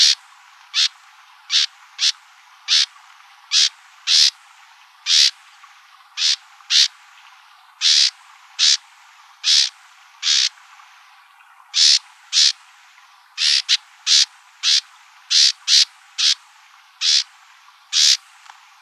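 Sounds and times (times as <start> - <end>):
wrens calling: 0.0 - 2.9, 3.5 - 4.3, 5.1 - 5.3, 6.2 - 6.9, 7.8 - 8.8, 9.4 - 10.5, 11.8 - 12.6, 13.4 - 16.4, 17.0 - 17.3, 17.9 - 18.2.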